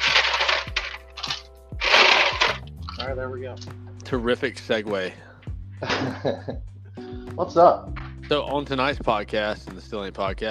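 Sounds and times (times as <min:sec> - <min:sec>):
ice trays rattling: 0:00.0 - 0:03.2
speech: 0:03.2 - 0:06.7, 0:07.4 - 0:10.4
laughter: 0:05.8 - 0:06.6.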